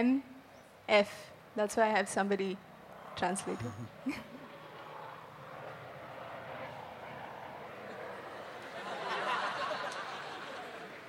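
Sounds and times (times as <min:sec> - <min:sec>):
speech: 0:00.0 - 0:00.3, 0:00.9 - 0:04.4
helicopter flying overhead: 0:01.2 - 0:11.0
laughter: 0:08.0 - 0:11.0.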